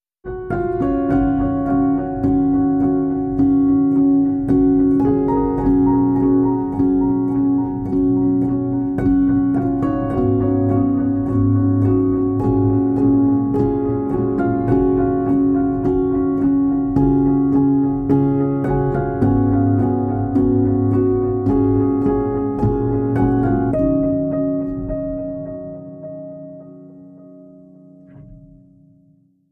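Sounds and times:
solo piano: 0.2s - 29.5s.

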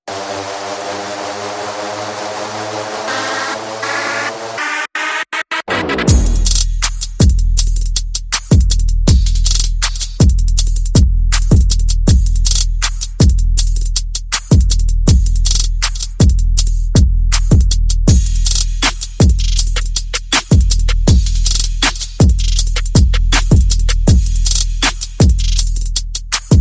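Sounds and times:
sound effects: 0.1s - 6.5s
percussion: 5.2s - 26.5s.

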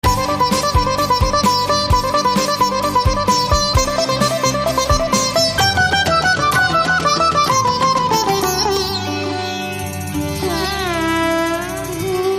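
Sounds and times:
Punjabi party music: 0.0s - 12.2s.

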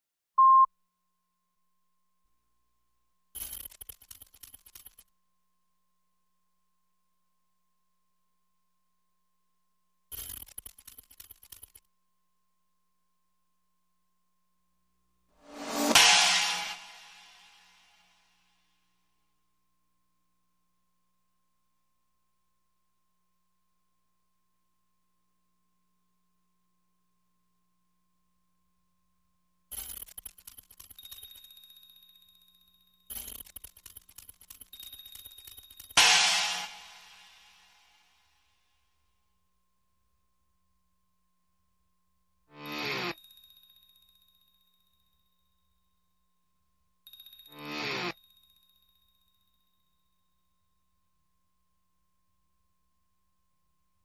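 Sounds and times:
percussion: 3.3s - 5.2s, 10.1s - 11.9s, 15.4s - 18.5s, 29.7s - 38.6s, 42.6s - 46.2s, 47.0s - 50.8s
sound effects: 15.4s - 17.8s, 36.0s - 37.6s.

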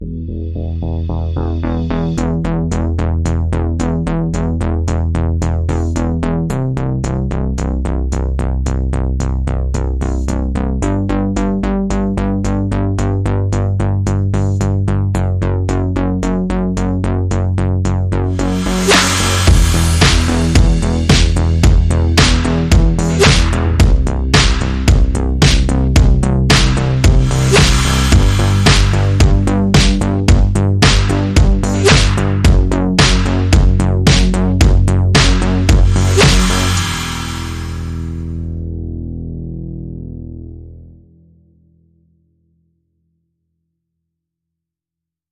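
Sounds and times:
bass: 0.0s - 43.7s
beats: 18.4s - 36.9s.

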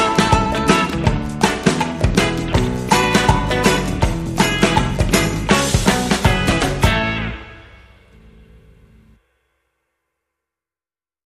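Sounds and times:
rhythm: 0.0s - 8.4s.

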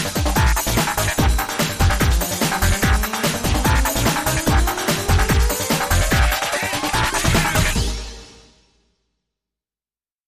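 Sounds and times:
pinball groove music: 0.0s - 8.0s.

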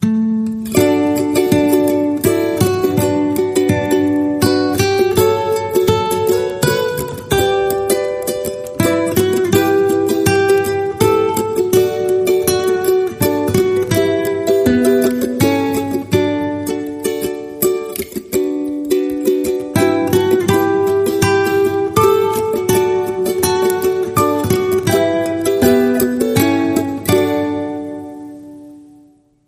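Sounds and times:
ukulele guitar: 0.0s - 29.4s.

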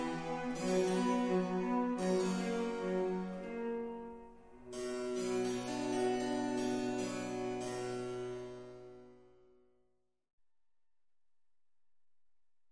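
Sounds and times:
violin concerto: 0.0s - 7.4s.

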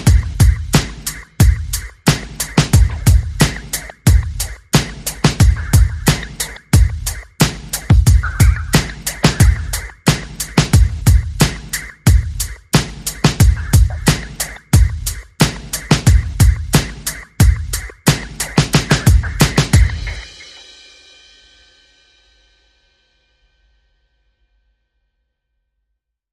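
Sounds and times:
percussion: 0.0s - 21.0s.

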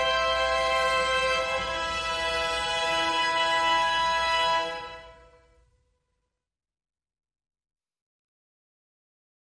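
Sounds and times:
string instruments: 0.0s - 6.1s.

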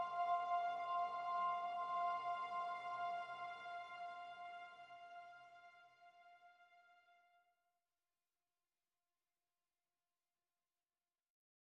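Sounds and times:
strings: 0.0s - 7.3s.

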